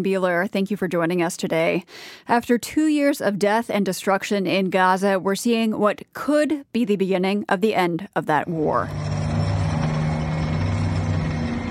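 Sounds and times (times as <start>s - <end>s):
speech: 0.0s - 9.1s
military trucks and armored vehicles moving: 8.6s - 11.7s.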